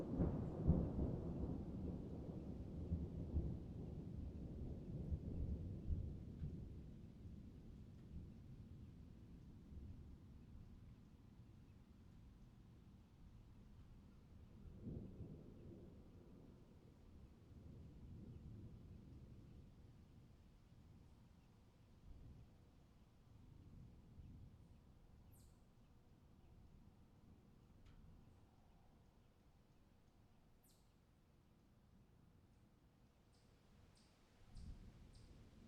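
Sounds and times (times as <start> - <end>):
thunderstorm: 0.0 - 10.1, 13.8 - 20.4.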